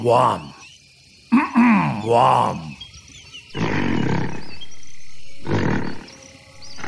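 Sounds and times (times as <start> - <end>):
speech: 0.0 - 0.6, 2.0 - 2.7
animal burping: 1.3 - 2.0, 3.5 - 4.5, 5.4 - 6.1.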